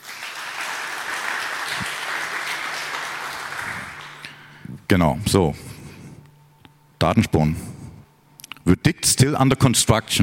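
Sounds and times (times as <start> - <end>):
audience applause: 0.0 - 4.3
speech: 4.9 - 5.7, 7.0 - 7.7, 8.7 - 10.2.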